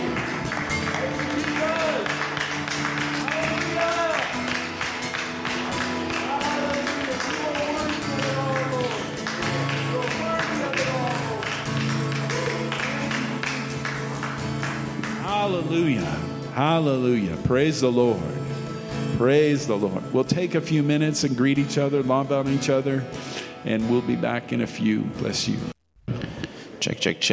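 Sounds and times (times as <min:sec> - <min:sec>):
congregation clapping as a praise offering during a church service: 0:00.0 - 0:16.5
music: 0:00.0 - 0:26.5
speech: 0:16.6 - 0:18.3, 0:19.2 - 0:25.7, 0:26.8 - 0:27.3.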